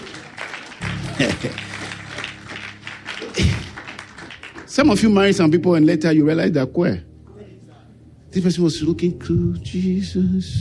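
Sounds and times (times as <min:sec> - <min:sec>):
audience clapping hands: 0:00.0 - 0:05.5
laughter: 0:00.8 - 0:02.3, 0:03.1 - 0:04.0
speech: 0:01.2 - 0:01.7, 0:04.8 - 0:07.1, 0:08.4 - 0:10.5.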